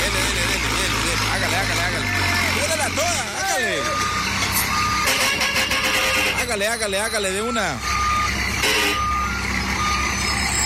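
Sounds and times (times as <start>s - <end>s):
truck engine rumbling: 0.0s - 10.6s
reversing truck warning beep: 3.0s - 10.6s
speech: 6.6s - 7.9s.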